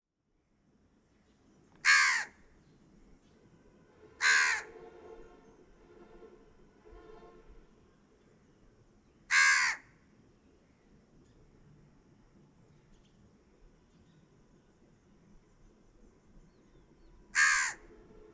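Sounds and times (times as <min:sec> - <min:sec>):
crow cawing: 0:01.8 - 0:02.4, 0:04.2 - 0:04.7, 0:09.3 - 0:10.0, 0:17.3 - 0:17.9.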